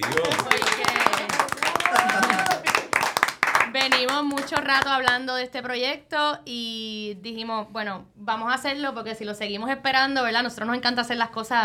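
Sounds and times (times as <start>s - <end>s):
applause: 0.0s - 5.2s
speech: 3.9s - 11.6s.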